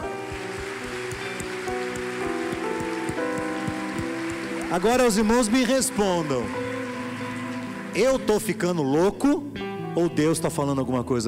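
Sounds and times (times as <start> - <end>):
audience applause: 0.0 - 8.7
speech: 4.7 - 6.6, 8.0 - 11.2.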